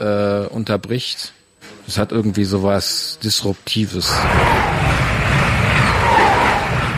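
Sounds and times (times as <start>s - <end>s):
speech: 0.0s - 5.0s
train passing by: 4.0s - 6.9s.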